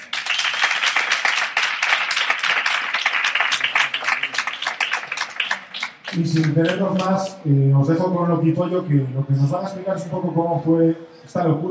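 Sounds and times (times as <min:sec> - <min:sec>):
audience applause: 0:00.0 - 0:07.1
speech: 0:06.2 - 0:11.7.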